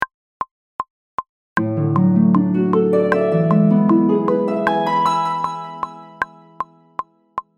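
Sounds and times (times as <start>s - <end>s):
harp: 1.7s - 7.0s.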